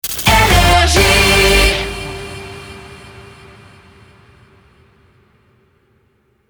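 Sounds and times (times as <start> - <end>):
jingle: 0.3 - 3.2.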